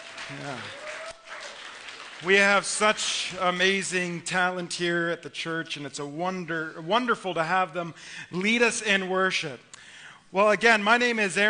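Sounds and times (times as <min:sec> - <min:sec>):
audience applause: 0:00.0 - 0:02.8
speech: 0:00.3 - 0:00.8, 0:02.2 - 0:09.7, 0:10.3 - 0:11.4.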